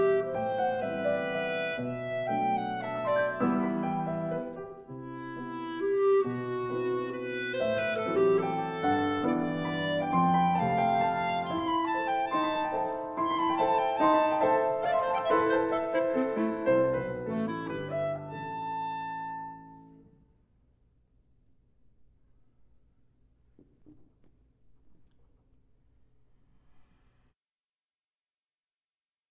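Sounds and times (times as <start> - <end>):
clarinet sonata: 0.0 - 20.2.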